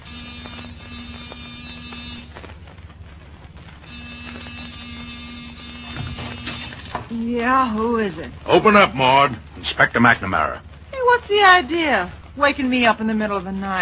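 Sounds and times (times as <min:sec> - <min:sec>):
door buzzer being pressed: 0:00.0 - 0:02.4, 0:03.8 - 0:07.1
speech: 0:07.1 - 0:13.8.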